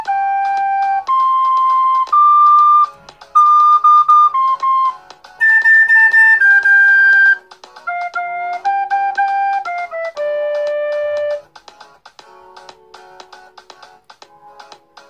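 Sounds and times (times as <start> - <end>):
flute: 0.0 - 11.5.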